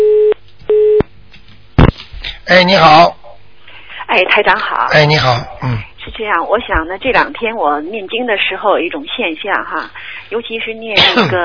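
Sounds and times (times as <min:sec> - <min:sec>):
telephone busy signal after dropped call: 0:00.0 - 0:01.0
speech: 0:02.5 - 0:03.2, 0:04.1 - 0:11.4.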